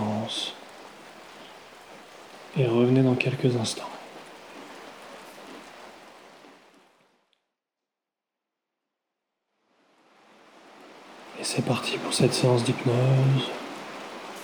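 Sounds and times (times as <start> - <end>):
steady dense rain hissing: 0.0 - 6.6, 10.7 - 14.4
speech: 2.6 - 4.0, 11.6 - 13.6.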